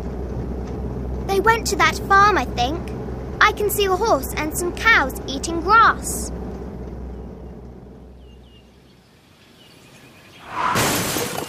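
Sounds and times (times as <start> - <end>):
speech: 1.4 - 6.4
car crashing into a tree: 10.6 - 11.4.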